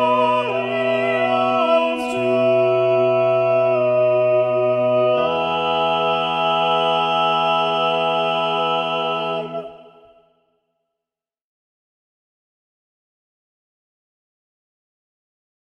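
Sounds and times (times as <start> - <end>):
balanced voices: 0.0 - 9.9.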